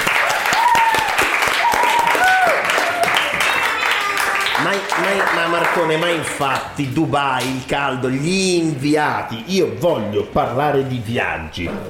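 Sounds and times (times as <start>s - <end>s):
crowd cheering and whooping: 0.0s - 4.6s
crowd applause: 0.0s - 6.4s
speech: 5.0s - 11.8s.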